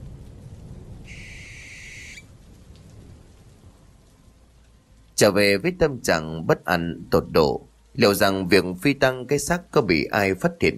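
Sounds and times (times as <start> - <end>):
low rumbling background: 0.0 - 10.7
rain: 0.0 - 10.7
barn owl screeching as it takes flight: 1.1 - 2.3
speech: 5.2 - 10.7.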